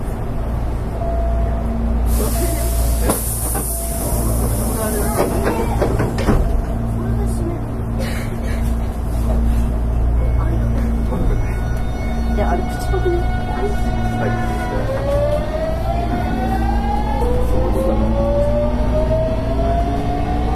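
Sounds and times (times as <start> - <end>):
Hankyu Railway 8000 series express train rumbling: 0.0 - 20.5
bright hissing burst and clunks: 2.2 - 6.5.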